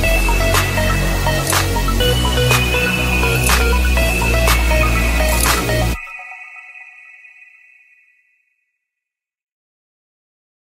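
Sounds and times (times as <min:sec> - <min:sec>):
instrumental music: 0:00.0 - 0:06.7.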